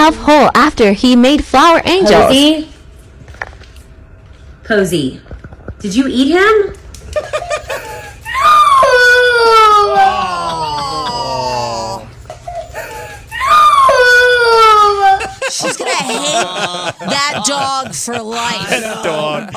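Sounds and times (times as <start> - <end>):
speech: 0.1 - 2.7, 4.7 - 8.6, 15.6 - 19.5
laughter: 7.0 - 8.2, 9.9 - 12.1, 14.5 - 19.5
little girl crying: 7.7 - 12.0, 12.6 - 15.5.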